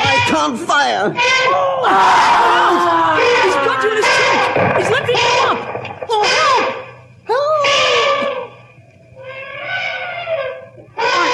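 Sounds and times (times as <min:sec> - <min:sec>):
speech: 0:00.4 - 0:04.0
charging elephant trumpeting as it attacks a man: 0:03.1 - 0:08.6, 0:09.2 - 0:11.3.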